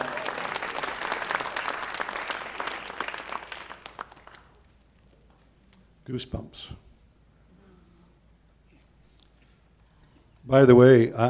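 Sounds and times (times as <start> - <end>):
crowd applauding: 0.0 - 4.7
speech: 6.1 - 6.9, 10.5 - 11.2.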